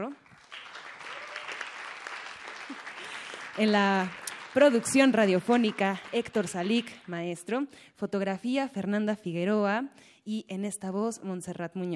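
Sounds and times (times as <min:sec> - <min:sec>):
speech: 0:00.0 - 0:00.3, 0:03.6 - 0:11.9
audience applause: 0:00.2 - 0:07.1.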